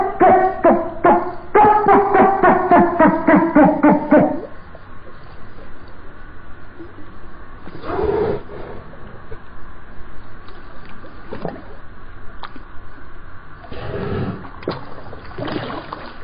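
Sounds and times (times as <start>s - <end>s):
dolphin chatter: 0.0s - 4.6s.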